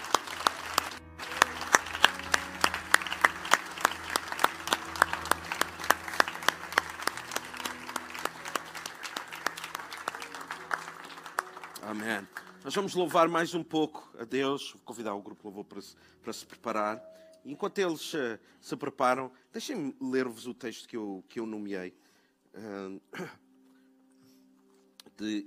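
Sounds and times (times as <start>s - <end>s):
audience applauding: 0.0s - 13.2s
speech: 12.0s - 23.4s, 25.2s - 25.4s.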